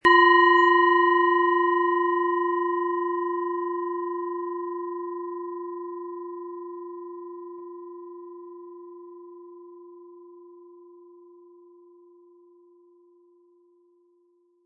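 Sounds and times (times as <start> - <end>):
planet singing bowl: 0.0 - 14.6.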